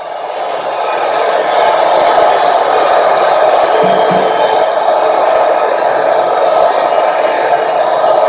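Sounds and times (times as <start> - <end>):
large rally crowd cheering wildly: 0.0 - 8.2.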